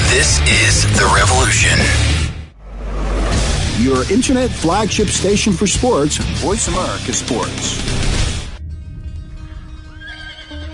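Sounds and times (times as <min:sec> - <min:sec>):
speech: 0:00.2 - 0:02.2, 0:03.8 - 0:08.1
horse neighing: 0:10.0 - 0:10.7.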